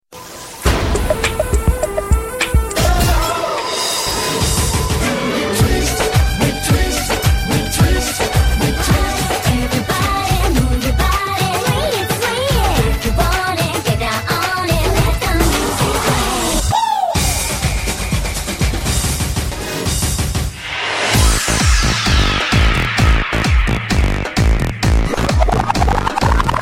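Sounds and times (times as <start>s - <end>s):
Bollywood film song remix: 0.2s - 26.6s.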